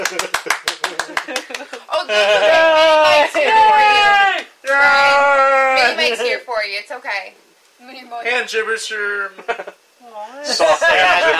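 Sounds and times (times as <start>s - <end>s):
speech: 0.0s - 1.4s, 2.0s - 2.7s, 6.0s - 11.3s
clapping: 0.0s - 1.9s, 3.2s - 3.6s
laughter: 0.0s - 4.1s, 5.5s - 6.5s, 9.4s - 9.8s, 10.4s - 11.3s.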